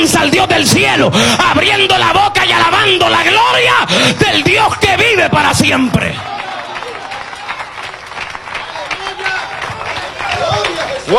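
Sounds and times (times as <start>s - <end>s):
speech: 0.0s - 6.4s
audience applause: 3.9s - 11.1s.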